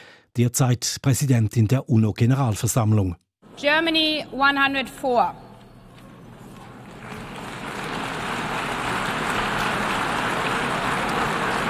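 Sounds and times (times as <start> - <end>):
speech: 0.4 - 5.4
subdued applause: 6.6 - 11.6.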